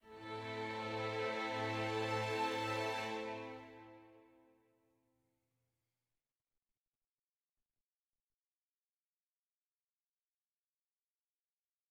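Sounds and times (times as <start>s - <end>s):
sad music: 0.0s - 4.3s.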